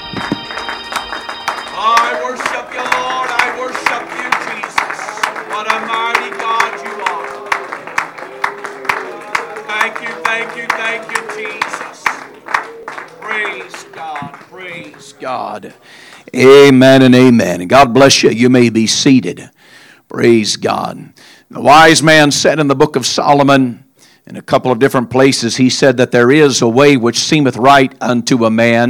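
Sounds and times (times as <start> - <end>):
audience hand clapping in praise: 0.0 - 16.8
speech: 1.8 - 4.7, 5.5 - 7.2, 10.4 - 11.9, 15.0 - 28.8.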